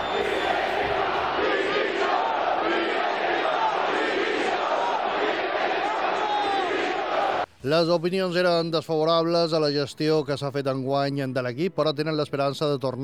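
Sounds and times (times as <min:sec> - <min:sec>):
Mallorca football fans chanting for board's resignation: 0:00.0 - 0:07.5
speech: 0:07.6 - 0:13.0.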